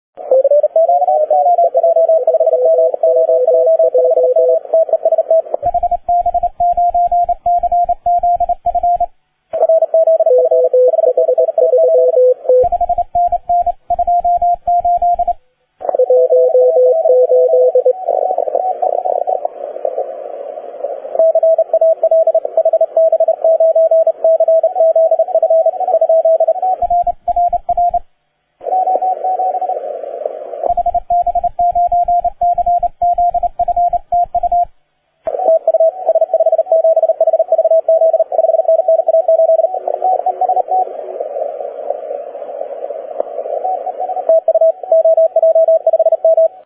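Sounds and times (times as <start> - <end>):
CW Morse code beeps: 0.3 - 19.5, 21.2 - 28.0, 28.7 - 29.8, 30.6 - 34.7, 35.4 - 40.9, 43.5 - 46.6.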